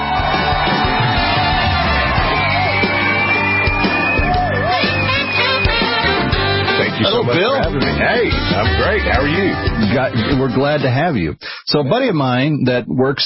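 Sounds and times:
studio audience cheering and whooping to welcome a talk show guest: 0.0 - 10.1
speech: 8.0 - 13.2.

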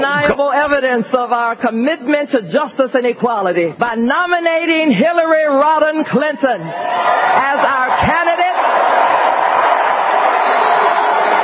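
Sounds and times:
speech: 0.3 - 8.3
large crowd booing: 6.7 - 11.4.

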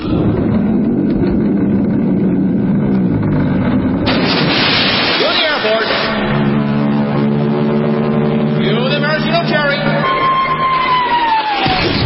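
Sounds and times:
tonal blasts: 0.0 - 12.0
sliding whistle-like tone: 9.8 - 11.9
sound effect of huge crowd cheering: 9.9 - 12.0.

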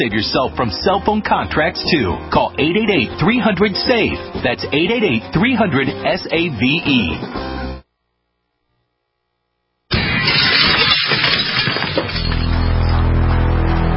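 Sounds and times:
speech: 0.0 - 7.5
crackling, splintering glass debris: 9.9 - 13.0
glass window smashing in a break-in: 9.9 - 13.0.

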